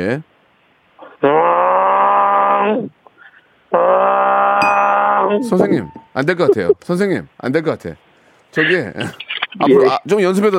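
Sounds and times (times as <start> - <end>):
speech: 0.0 - 0.3, 1.2 - 1.5, 2.6 - 3.0, 5.3 - 10.5
person imitating a bullfrog's mating call: 1.0 - 3.0, 3.7 - 4.6.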